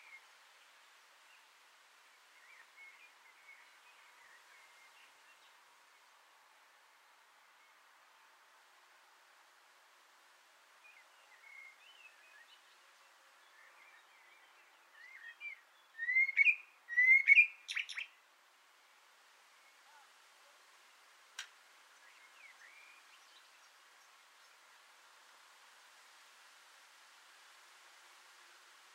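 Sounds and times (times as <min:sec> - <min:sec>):
Common blackbird singing from an antenna: 0:14.9 - 0:18.2.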